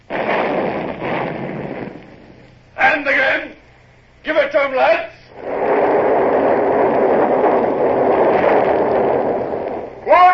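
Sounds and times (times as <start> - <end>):
ship's cannons firing: 0.0 - 3.4, 5.3 - 10.2.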